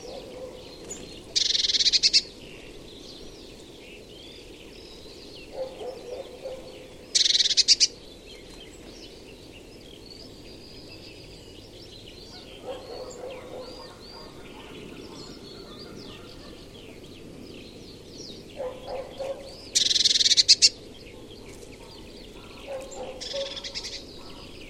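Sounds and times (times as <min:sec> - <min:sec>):
bird giving a short high buzzy trill: 0:00.0 - 0:02.3, 0:05.6 - 0:07.9, 0:12.4 - 0:16.8, 0:18.6 - 0:20.8, 0:21.5 - 0:24.6.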